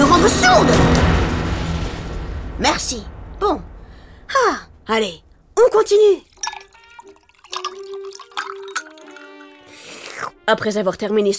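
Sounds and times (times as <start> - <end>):
speech: 0.2 - 1.1, 2.6 - 3.7, 4.3 - 6.3, 10.2 - 11.3
bath water running from tap: 5.8 - 10.3.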